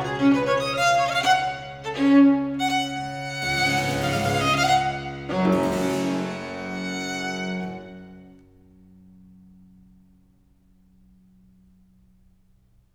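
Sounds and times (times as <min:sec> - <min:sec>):
violin fugue in G minor: 0:00.0 - 0:08.5.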